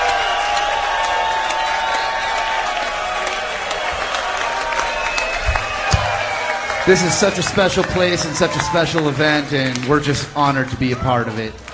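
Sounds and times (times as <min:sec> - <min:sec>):
audience shouts: 0:00.0 - 0:09.2
large audience applauding: 0:00.0 - 0:11.7
speech: 0:06.9 - 0:11.7.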